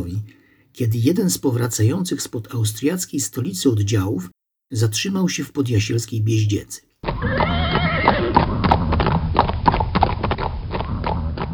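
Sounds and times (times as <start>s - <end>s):
speech: 0.0s - 7.4s
horse whinnying: 7.0s - 9.2s
horses walking, hooves clip-clopping on hard ground: 7.0s - 11.5s.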